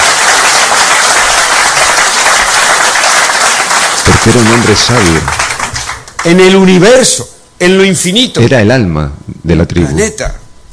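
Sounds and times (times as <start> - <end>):
people applauding: 0.0 - 6.8
speech: 4.3 - 5.4, 6.2 - 10.7.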